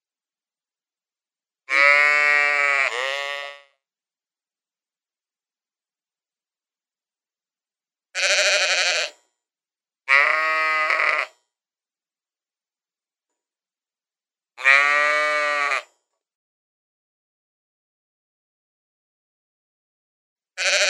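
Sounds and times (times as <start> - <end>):
sheep giving wavering bleats: 1.7 - 3.7, 8.2 - 9.2, 10.1 - 11.4, 14.6 - 15.9, 20.6 - 20.8.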